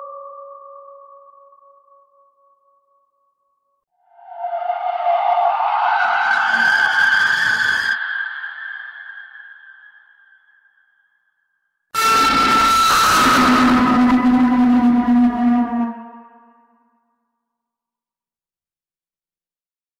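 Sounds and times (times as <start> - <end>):
scary horror sound effects: 4.0 - 11.0, 12.0 - 16.7.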